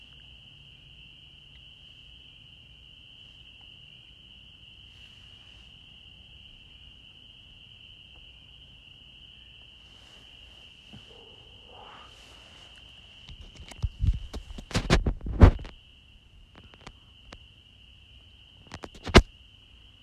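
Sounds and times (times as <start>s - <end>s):
frogs trilling in chorus in Holliston, Massachusetts: 0.0s - 14.7s, 15.5s - 20.0s.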